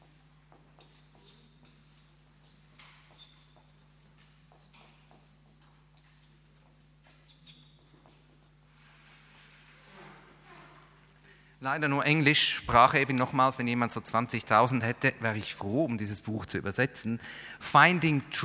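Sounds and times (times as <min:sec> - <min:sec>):
pen scratching across paper writing a book title: 0:00.0 - 0:09.8
speech: 0:11.6 - 0:18.4.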